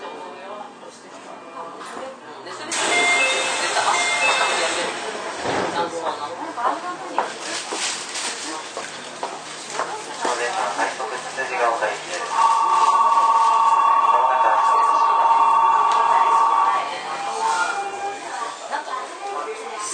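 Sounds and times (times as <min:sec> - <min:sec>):
Keio 9000 series train running: 0:02.7 - 0:06.8, 0:10.3 - 0:19.5
steady high tone: 0:02.8 - 0:05.0, 0:12.3 - 0:18.5.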